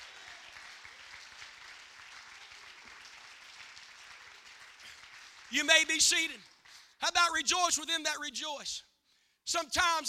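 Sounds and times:
audience clapping hands: 0.0s - 7.0s
speech: 5.5s - 8.9s, 9.5s - 10.0s.

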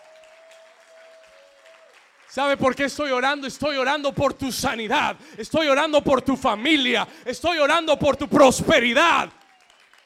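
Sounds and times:
loud applause from an audience: 0.0s - 4.1s, 8.5s - 10.0s
speech: 2.3s - 9.4s.

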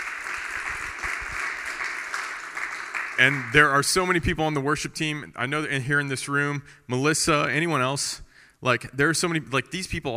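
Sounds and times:
audience applause: 0.0s - 3.8s
speech: 3.2s - 10.1s.

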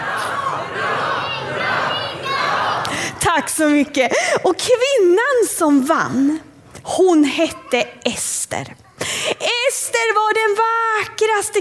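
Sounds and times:
crowd shouting a hurrah for King Xerxes: 0.0s - 3.0s
speech: 3.4s - 8.8s, 9.4s - 11.5s.

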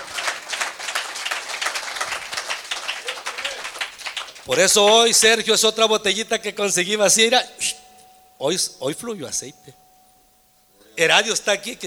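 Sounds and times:
crowd applauding: 0.0s - 5.1s
speech: 4.5s - 7.8s, 8.4s - 9.8s, 11.0s - 11.8s.

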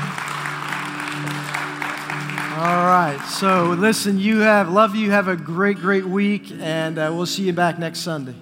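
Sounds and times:
audience applause: 0.0s - 4.8s
speech: 2.6s - 8.3s.

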